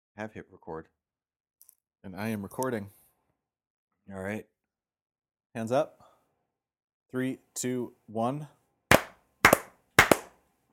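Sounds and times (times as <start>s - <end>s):
speech: 0.2s - 1.0s, 2.0s - 3.0s, 4.1s - 4.5s, 5.5s - 6.0s, 7.1s - 8.6s
hand clap: 8.9s - 10.4s.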